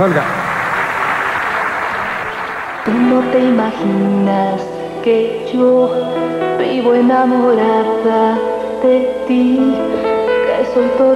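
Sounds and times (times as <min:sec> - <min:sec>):
speech: 0:00.0 - 0:00.4, 0:02.8 - 0:10.1, 0:10.8 - 0:11.1
studio audience applause: 0:00.0 - 0:03.5.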